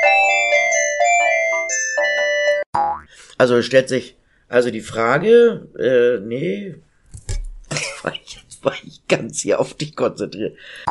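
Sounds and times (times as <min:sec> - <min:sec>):
telephone ringing: 0:00.0 - 0:02.6
speech: 0:03.4 - 0:06.9, 0:08.0 - 0:10.8.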